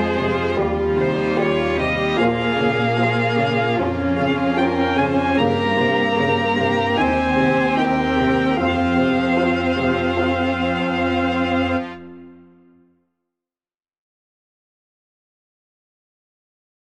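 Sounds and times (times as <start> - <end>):
backing track: 0.0 - 12.6.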